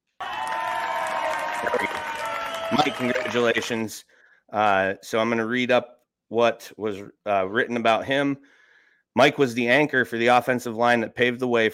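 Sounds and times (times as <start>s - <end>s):
crowd cheer sound effect: 0.0s - 3.9s
speech: 2.7s - 8.6s, 9.2s - 11.7s.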